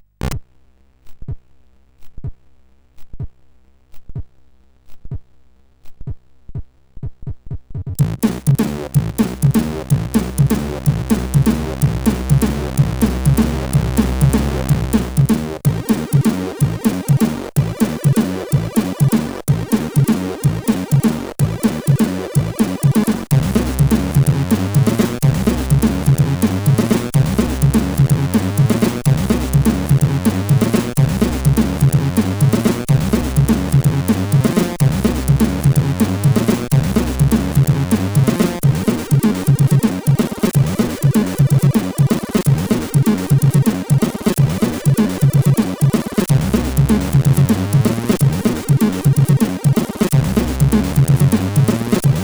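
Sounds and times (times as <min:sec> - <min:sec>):
intro on CSG8580R5 sound chip: 0:08.0 - 0:52.2.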